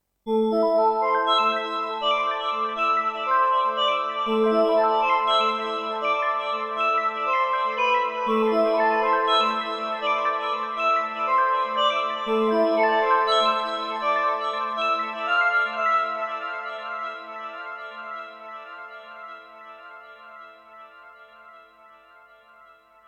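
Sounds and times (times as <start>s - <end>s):
singing sparkle effect: 0.4s - 20.0s.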